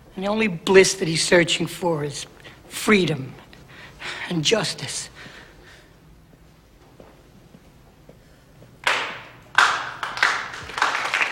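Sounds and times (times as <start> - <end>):
speech: 0.2 - 3.4, 4.0 - 5.3
applause: 8.8 - 11.2.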